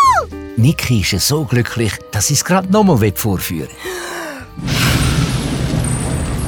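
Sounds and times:
speech: 0.6 - 4.9
big jet of fire breathed from a character's mouth: 4.6 - 6.4.

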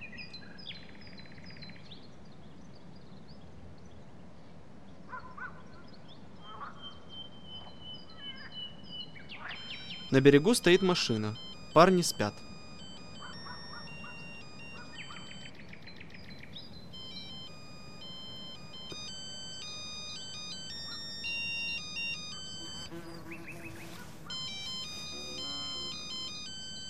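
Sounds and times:
mobile phone ringtone beeping electronic melody: 9.5 - 26.8
speech: 10.1 - 12.5.

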